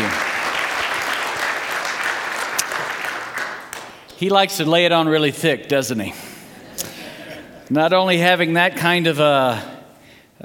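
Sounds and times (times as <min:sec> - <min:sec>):
church audience applause at a morning service: 0:00.0 - 0:04.5
speech: 0:04.2 - 0:06.3, 0:07.7 - 0:09.7.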